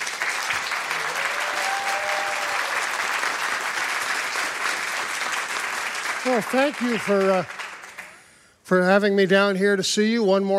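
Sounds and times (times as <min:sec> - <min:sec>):
audience clapping: 0:00.0 - 0:08.4
speech: 0:06.2 - 0:07.6, 0:08.7 - 0:10.5.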